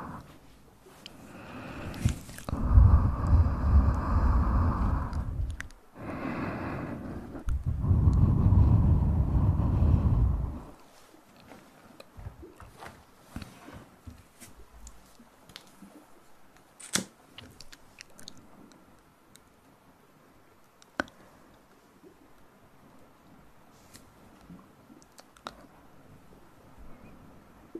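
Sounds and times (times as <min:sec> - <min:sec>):
faint steady hum: 0:00.0 - 0:27.7
loud low rumbling bursts with a crunching texture: 0:02.0 - 0:05.7, 0:06.8 - 0:10.8.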